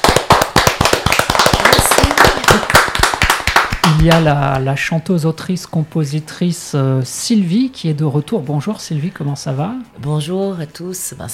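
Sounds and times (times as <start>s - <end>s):
crowd applause: 0.0s - 4.2s
speech: 4.0s - 11.3s.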